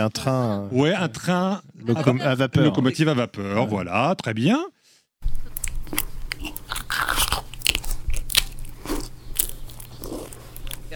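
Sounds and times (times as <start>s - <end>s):
speech: 0.0s - 5.4s
person eating: 5.2s - 10.9s.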